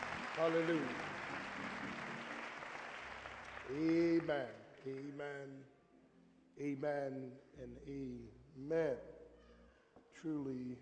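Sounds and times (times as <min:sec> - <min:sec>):
audience hand clapping: 0:00.0 - 0:05.2
speech: 0:00.4 - 0:01.1, 0:03.7 - 0:05.8, 0:06.6 - 0:09.2, 0:10.1 - 0:10.8.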